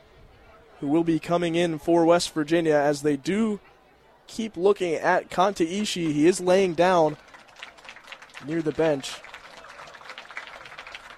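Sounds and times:
speech: 0.8s - 3.7s, 4.3s - 7.3s, 8.4s - 9.3s
stadium crowd applause: 5.9s - 11.1s.

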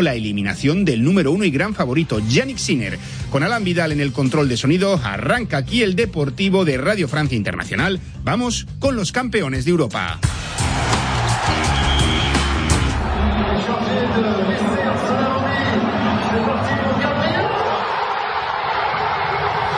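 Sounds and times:
speech: 0.0s - 10.6s
Paris Saint-Germain fans roaring after Champions League final victory: 10.3s - 19.7s.

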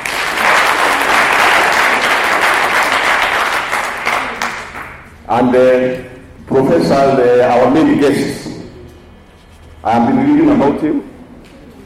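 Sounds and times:
audience clapping: 0.0s - 5.2s
speech: 5.3s - 8.5s, 9.8s - 11.1s.

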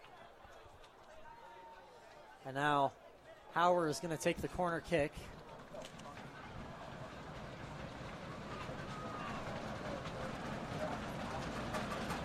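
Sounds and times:
speech: 2.4s - 3.0s, 3.6s - 5.4s
fans stomping in the stands: 5.3s - 12.2s.

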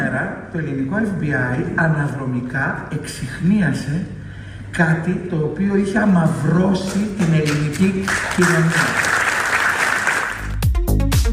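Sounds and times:
speech: 0.3s - 9.1s
applause: 6.9s - 10.8s.

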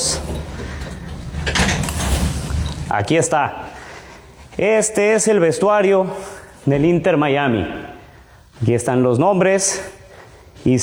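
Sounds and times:
door being opened: 0.0s - 3.1s
speech: 2.9s - 3.7s, 4.6s - 7.9s, 8.6s - 10.0s, 10.6s - 10.8s.

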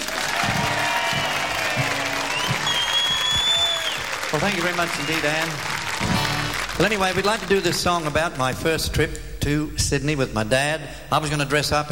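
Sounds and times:
audience applause welcoming a singer back on stage at a live concert: 0.0s - 8.3s
speech: 4.4s - 5.8s, 6.8s - 11.8s.

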